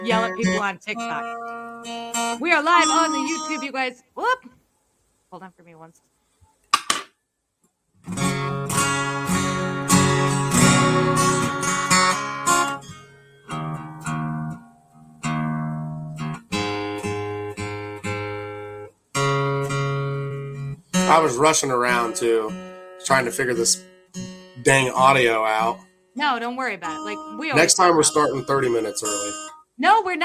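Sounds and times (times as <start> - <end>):
guitar being tuned: 0.0 - 3.9, 8.0 - 29.6
speech: 0.0 - 4.6, 5.3 - 6.1, 21.1 - 30.2.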